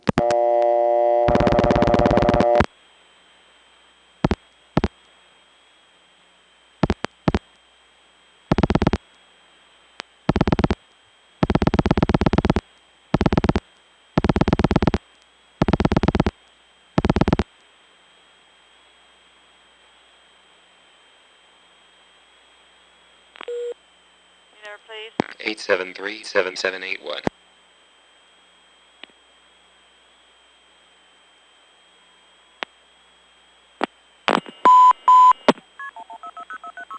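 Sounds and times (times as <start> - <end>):
faint steady hum: 0.0 - 36.9
operator telephone signalling tones on a phone line: 0.2 - 2.7, 23.5 - 23.8, 34.5 - 36.9
speech: 24.8 - 27.3.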